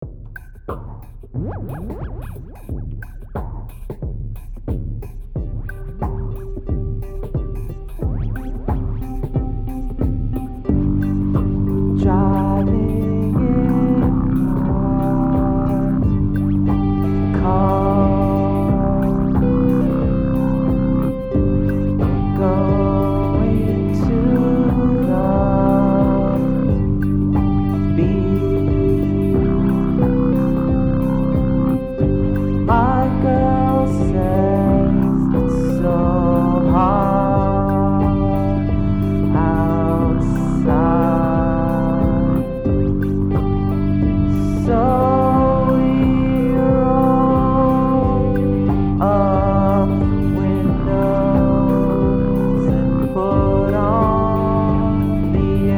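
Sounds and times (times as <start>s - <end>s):
chillwave music: 4.6s - 55.7s.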